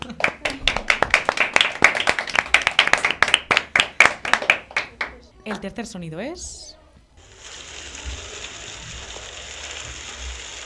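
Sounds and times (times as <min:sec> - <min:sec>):
small group clapping: 0:00.0 - 0:05.6
speech: 0:05.5 - 0:06.8.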